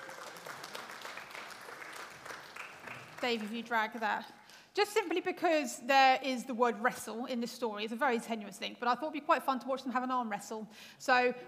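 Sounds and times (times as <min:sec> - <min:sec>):
crowd applause: 0:00.0 - 0:03.6
speech: 0:03.2 - 0:11.4.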